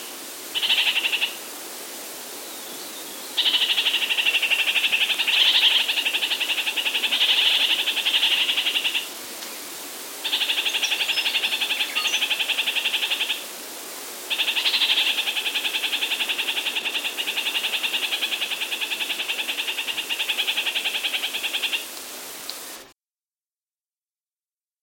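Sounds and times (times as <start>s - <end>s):
red-crowned parakeet calling: 3.4s - 9.1s, 10.2s - 13.4s, 14.3s - 21.9s.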